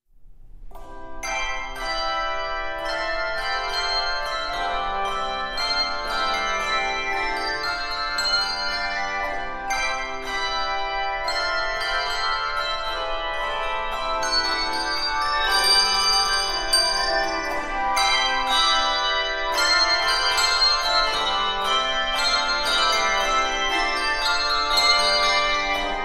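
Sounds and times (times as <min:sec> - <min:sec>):
three to five octave handbells playing: 0:01.0 - 0:26.0.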